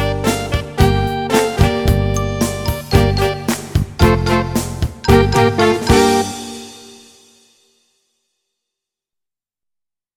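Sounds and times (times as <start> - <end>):
blues jam backing track in E flat: 0.0 - 6.9.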